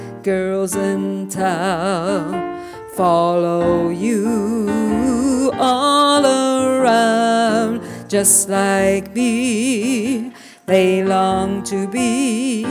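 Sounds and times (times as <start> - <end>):
alto voice singing: 0.0 - 12.6.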